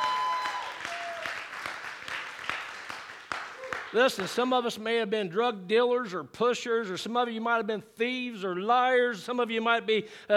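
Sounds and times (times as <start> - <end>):
audience clapping hands in praise: 0.0 - 4.6
speech: 3.9 - 10.3.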